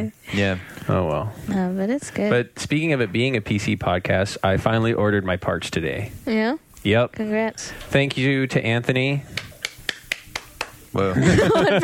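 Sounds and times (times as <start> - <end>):
speech: 0.0 - 9.5, 10.9 - 11.8
person clapping hands: 9.4 - 10.8
laughter: 11.0 - 11.8.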